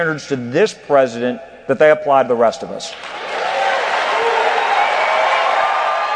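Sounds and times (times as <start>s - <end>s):
speech: 0.0s - 3.2s
roaring standing ovation, applause and cheering: 2.9s - 6.1s.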